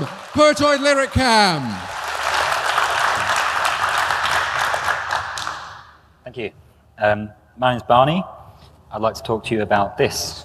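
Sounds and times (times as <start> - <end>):
speech: 0.0 - 1.9, 6.4 - 10.4
audience clapping gently for a talk: 0.0 - 6.0.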